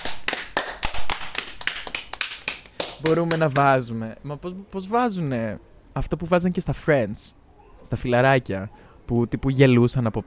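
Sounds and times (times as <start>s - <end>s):
few people clapping: 0.0s - 3.8s
speech: 3.0s - 10.2s.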